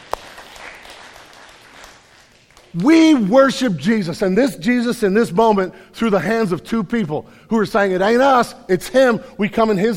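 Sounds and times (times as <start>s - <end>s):
crowd applauding: 0.0s - 3.0s
speech: 2.7s - 9.9s.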